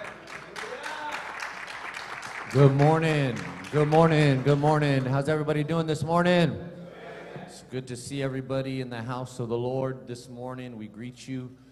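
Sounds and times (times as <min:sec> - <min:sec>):
audience hand clapping: 0:00.0 - 0:05.2
speech: 0:02.5 - 0:06.7, 0:07.7 - 0:11.6.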